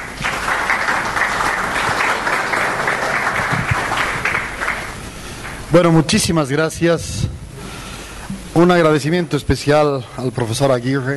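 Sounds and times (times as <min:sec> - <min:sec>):
audience applause welcoming a speaker: 0:00.0 - 0:05.6
speech: 0:05.7 - 0:07.3, 0:08.6 - 0:11.1.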